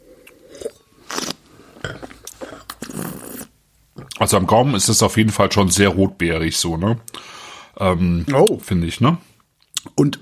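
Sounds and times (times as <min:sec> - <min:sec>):
wine sipped and slurped at a wine tasting: 0:00.0 - 0:04.2
speech: 0:04.2 - 0:09.3, 0:09.9 - 0:10.2.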